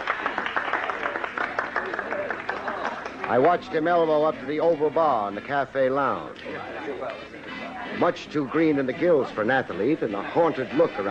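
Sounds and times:
tennis gallery applause: 0:00.0 - 0:05.1
speech: 0:03.3 - 0:11.0.

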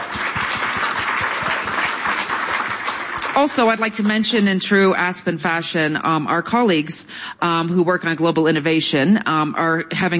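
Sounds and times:
crowd applause: 0:00.0 - 0:03.8
speech: 0:03.4 - 0:10.1.

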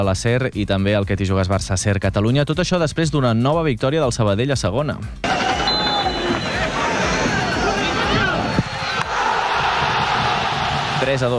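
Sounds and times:
speech: 0:00.0 - 0:05.3, 0:11.1 - 0:11.3
stadium crowd erupting in euphoria after goal: 0:05.2 - 0:11.3.

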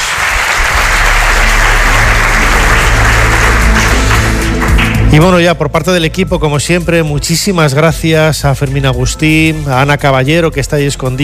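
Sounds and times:
audience applause: 0:00.0 - 0:05.1
speech: 0:05.1 - 0:11.2.

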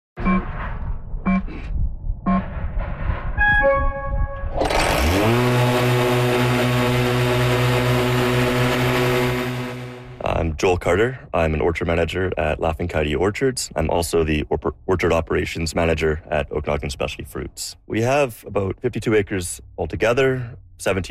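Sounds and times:
autonomous electric orchard mower whirs and tones: 0:00.2 - 0:10.2
autonomous electric orchard mower motor droning: 0:04.5 - 0:10.2
speech: 0:10.6 - 0:21.0.

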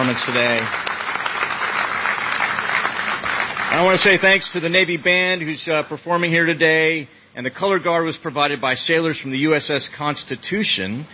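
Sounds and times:
speech: 0:00.0 - 0:00.9, 0:03.7 - 0:11.1
crowd applause after a national anthem performance: 0:00.0 - 0:04.5.

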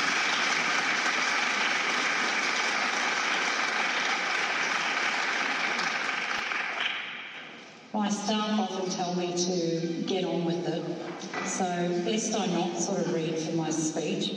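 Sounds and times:
audience applause: 0:00.0 - 0:07.0
speech: 0:08.0 - 0:14.3.

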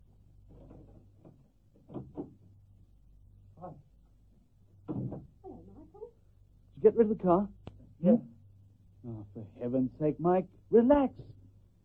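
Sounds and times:
door clunks: 0:04.8 - 0:05.4
speech: 0:06.8 - 0:08.3, 0:09.4 - 0:11.3.

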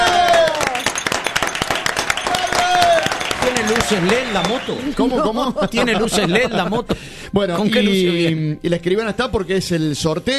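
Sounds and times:
cheering voices: 0:00.0 - 0:00.9, 0:01.8 - 0:05.2
lively applause: 0:00.0 - 0:06.0
laughter: 0:03.4 - 0:08.2
speech: 0:03.9 - 0:10.3.

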